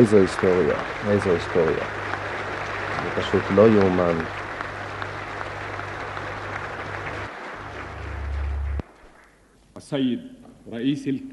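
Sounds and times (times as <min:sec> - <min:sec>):
speech: 0:00.0 - 0:02.0, 0:03.1 - 0:04.4, 0:09.8 - 0:11.3
parliament standing ovation applause: 0:00.0 - 0:09.4
low hum: 0:06.0 - 0:08.9.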